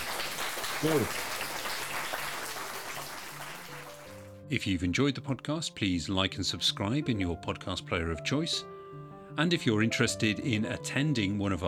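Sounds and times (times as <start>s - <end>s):
audience applauding: 0.0s - 4.4s
speech: 0.8s - 1.3s, 4.5s - 11.6s.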